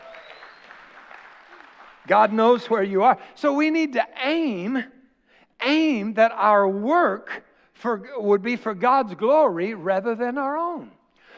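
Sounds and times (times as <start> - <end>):
audience hand clapping: 0.0 - 2.9
speech: 2.1 - 5.0, 5.6 - 11.0.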